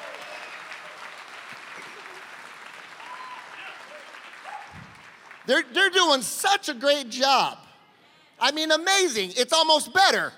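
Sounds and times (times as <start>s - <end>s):
audience applause: 0.0s - 5.6s
speech: 5.5s - 7.6s, 8.4s - 10.3s.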